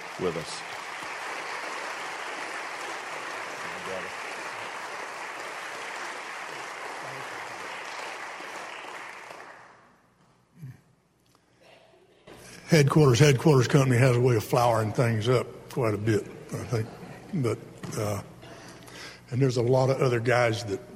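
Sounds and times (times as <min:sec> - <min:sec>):
audience clapping to welcome a speaker: 0:00.0 - 0:10.0
speech: 0:00.2 - 0:00.8, 0:03.9 - 0:04.2, 0:12.7 - 0:18.3, 0:19.3 - 0:20.9.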